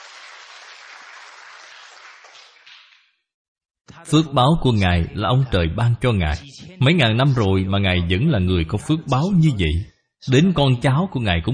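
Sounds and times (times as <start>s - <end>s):
audience applauding at a lecture: 0.0s - 3.1s
speech: 4.0s - 11.5s.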